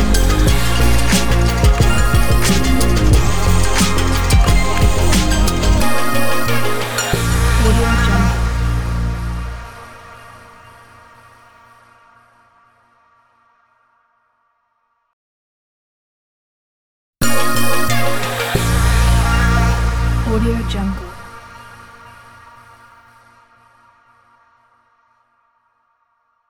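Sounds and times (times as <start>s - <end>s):
fashion hip hop intro ident: 0.0s - 12.0s, 17.2s - 22.2s.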